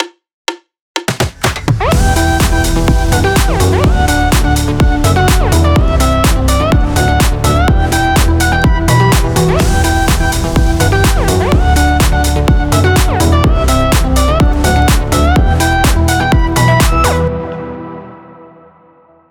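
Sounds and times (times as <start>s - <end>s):
deep house music: 1.2s - 18.1s.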